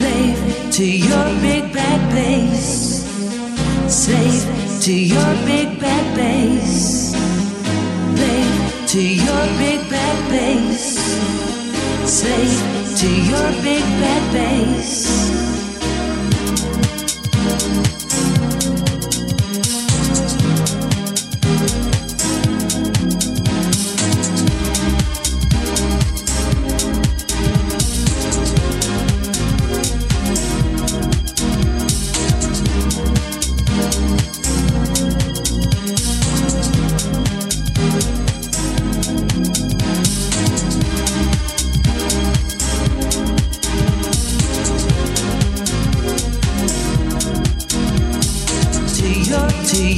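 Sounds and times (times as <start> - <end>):
happy music tuned to 432 Hz: 0.0 - 49.9.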